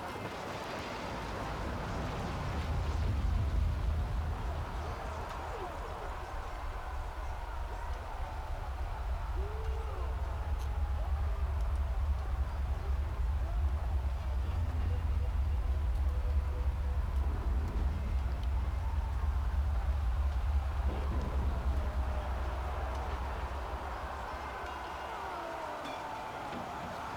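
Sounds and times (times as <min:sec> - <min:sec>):
eastern front battlefield ambience: 0:00.0 - 0:27.1.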